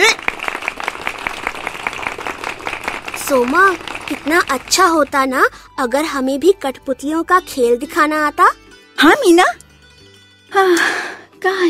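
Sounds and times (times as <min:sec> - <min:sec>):
clapping: 0:00.0 - 0:05.2
speech: 0:03.3 - 0:09.6, 0:10.5 - 0:11.6.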